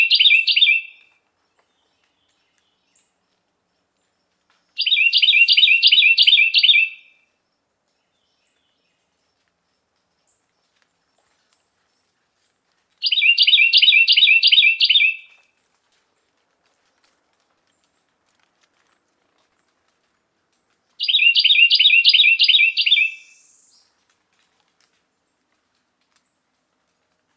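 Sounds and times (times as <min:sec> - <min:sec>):
Carolina wren song: 0:00.0 - 0:01.0, 0:04.7 - 0:07.2, 0:13.0 - 0:15.4, 0:21.0 - 0:24.0.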